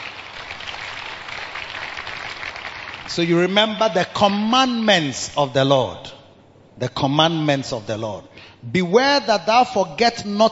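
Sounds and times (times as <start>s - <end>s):
audience clapping: 0.0s - 3.5s
speech: 3.1s - 6.2s, 6.8s - 10.5s.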